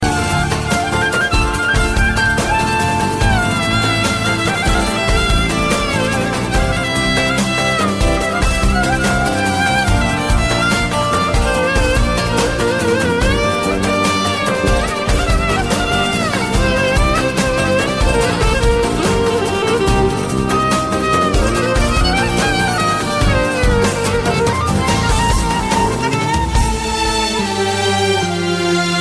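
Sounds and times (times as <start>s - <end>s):
slow violin: 0.0s - 29.0s.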